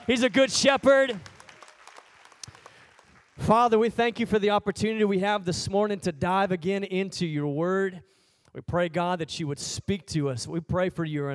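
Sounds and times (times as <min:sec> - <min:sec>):
audience applause: 0:00.0 - 0:03.8
speech: 0:00.1 - 0:01.3, 0:03.4 - 0:11.3.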